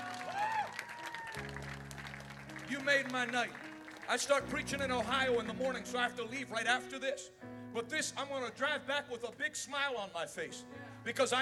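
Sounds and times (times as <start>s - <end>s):
audience clapping: 0.0s - 4.7s
speech: 1.4s - 1.6s, 2.7s - 11.4s.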